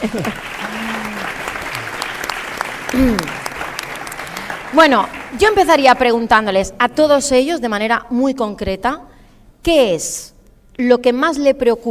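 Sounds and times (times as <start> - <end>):
speech: 0.0 - 1.0, 2.9 - 3.4, 4.7 - 11.8
audience applause: 0.0 - 5.7.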